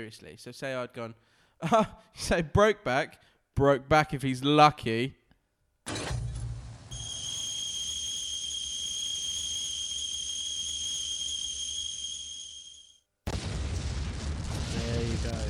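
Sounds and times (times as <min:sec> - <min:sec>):
speech: 0:00.0 - 0:05.2
high-pitched whistle like a boiling kettle: 0:06.9 - 0:13.0
explosion sound effect boom: 0:13.3 - 0:15.4.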